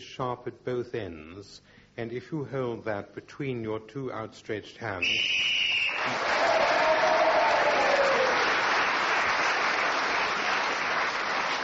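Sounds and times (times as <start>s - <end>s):
speech: 0.2s - 6.8s
audience cheering and applauding: 5.6s - 11.6s.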